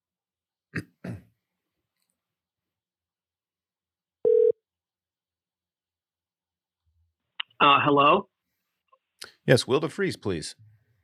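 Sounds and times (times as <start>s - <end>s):
throat clearing: 0.7s - 1.4s
telephone ringback tone on a call: 4.2s - 4.6s
speech: 7.6s - 8.3s, 9.2s - 10.7s.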